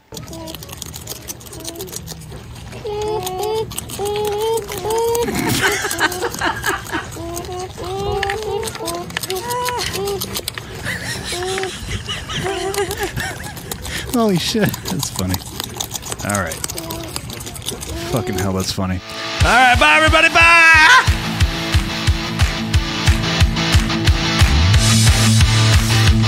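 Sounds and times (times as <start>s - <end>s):
beavers eating: 0.0s - 26.2s
laughter: 4.8s - 15.4s, 19.4s - 21.4s
speech: 14.2s - 15.5s, 16.3s - 16.6s, 18.1s - 21.2s.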